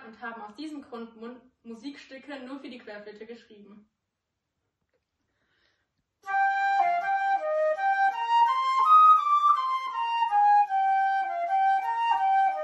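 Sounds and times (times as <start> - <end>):
transverse flute: 6.3 - 12.6.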